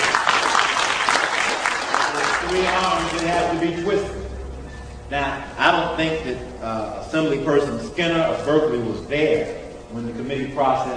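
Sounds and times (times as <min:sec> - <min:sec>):
audience applause: 0:00.0 - 0:03.6
speech: 0:02.5 - 0:04.2, 0:05.1 - 0:10.9.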